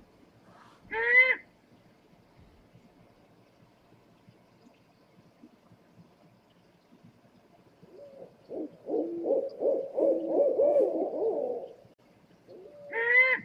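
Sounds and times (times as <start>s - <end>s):
owl hooting: 0.9s - 1.4s, 7.9s - 11.8s, 12.5s - 13.4s.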